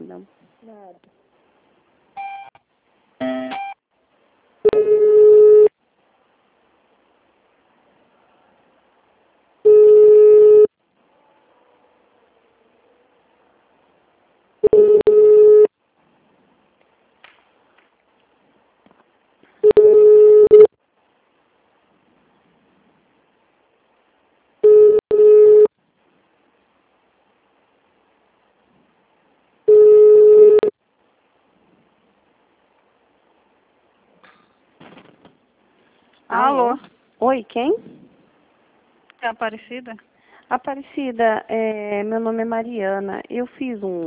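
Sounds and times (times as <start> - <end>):
speech: 0.2 - 1.2, 36.3 - 38.0, 39.2 - 44.0
telephone ringing tone during call transfer: 3.2 - 3.8, 4.7 - 5.7, 9.7 - 10.7, 14.6 - 15.7, 19.6 - 20.7, 24.6 - 25.7, 29.7 - 30.7.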